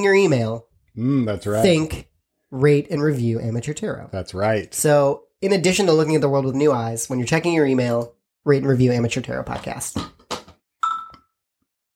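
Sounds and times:
speech: 0.0s - 10.2s
Slack notification chime: 10.8s - 11.2s.

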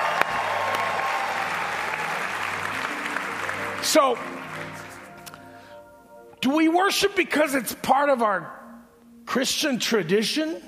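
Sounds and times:
audience applause for worship team: 0.0s - 5.2s
speech: 3.8s - 4.9s, 6.4s - 8.6s, 9.3s - 10.6s.

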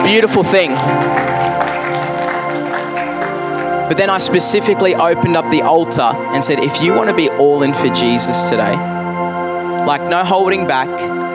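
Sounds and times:
audience applause: 0.0s - 4.8s
sustained musical tones: 0.0s - 11.3s
speech: 0.1s - 1.4s, 3.9s - 9.0s, 9.9s - 11.2s.

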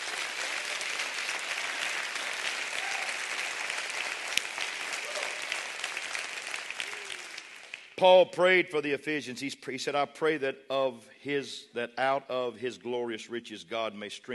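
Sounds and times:
audience clapping loudly: 0.0s - 8.0s
speech: 8.0s - 14.3s.

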